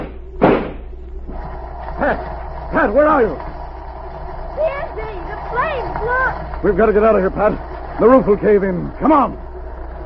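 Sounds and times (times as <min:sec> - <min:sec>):
gunshot breaking a door lock: 0:00.0 - 0:00.9
speech: 0:02.0 - 0:03.5, 0:04.6 - 0:09.5.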